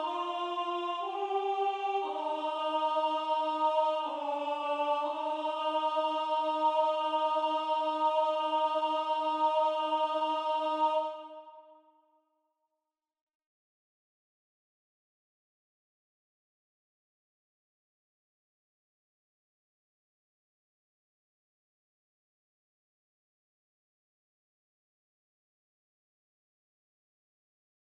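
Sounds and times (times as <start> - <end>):
tenor singing: 0.0 - 11.6.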